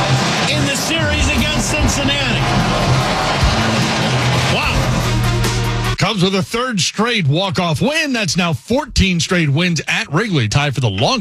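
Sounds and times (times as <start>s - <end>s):
Wrigley stadium crowd cheering a walk-off win: 0.0s - 6.3s
speech: 6.1s - 11.1s.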